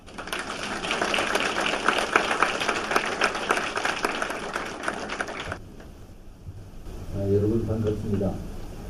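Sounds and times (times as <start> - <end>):
audience applause: 0.0 - 5.6
speech: 8.1 - 8.5.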